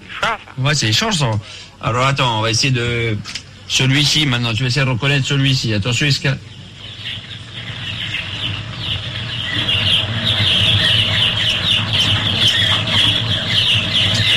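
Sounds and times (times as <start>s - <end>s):
speech: 0.2s - 7.2s
many chicks peeping inside a poultry house: 6.2s - 14.3s.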